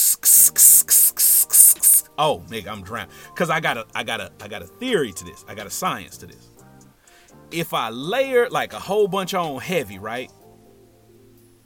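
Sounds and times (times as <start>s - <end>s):
cologne being sprayed from a bottle: 0.0s - 2.0s
speech: 2.2s - 6.5s, 7.5s - 10.4s.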